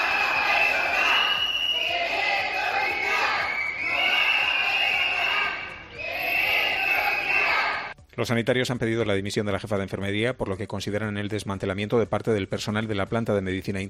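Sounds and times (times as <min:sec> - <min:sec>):
protesters chanting slogans: 0:00.0 - 0:07.9
speech: 0:08.2 - 0:13.8.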